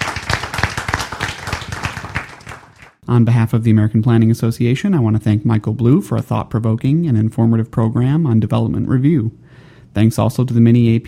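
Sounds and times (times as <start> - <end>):
audience applause: 0.0 - 3.0
speech: 3.1 - 11.0.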